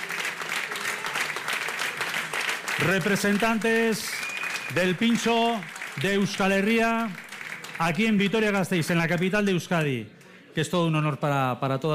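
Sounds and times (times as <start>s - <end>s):
audience applause: 0.0s - 9.4s
speech: 2.8s - 7.2s, 7.8s - 11.9s.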